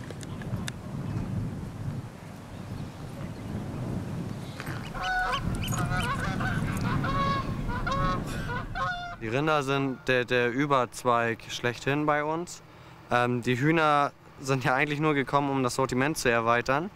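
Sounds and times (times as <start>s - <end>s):
wind noise: 0.0s - 9.5s
geese honking on a pasture: 4.6s - 10.0s
speech: 9.3s - 16.9s.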